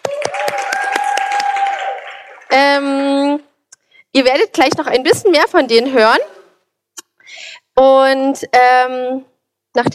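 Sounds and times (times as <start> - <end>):
audience applause: 0.0 - 2.5
speech: 4.2 - 6.3, 7.8 - 9.9.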